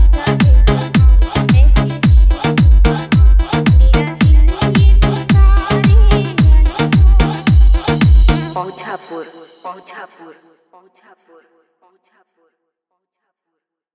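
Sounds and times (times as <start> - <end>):
remix music: 0.0 - 10.2.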